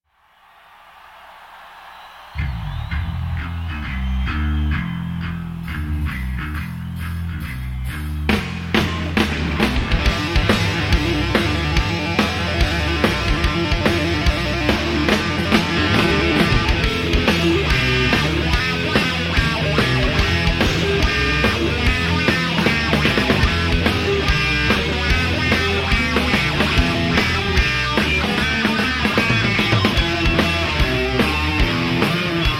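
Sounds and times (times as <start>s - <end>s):
live encore jam: 2.4s - 32.5s.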